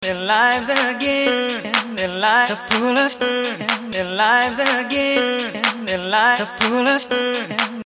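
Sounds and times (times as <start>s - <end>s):
a cappella singing: 0.0s - 7.8s.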